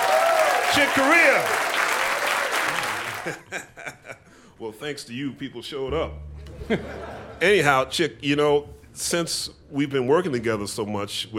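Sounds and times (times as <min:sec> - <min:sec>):
audience applause: 0:00.0 - 0:03.5
speech: 0:00.8 - 0:01.7, 0:03.2 - 0:11.3
laughter: 0:02.6 - 0:04.3, 0:06.4 - 0:07.7.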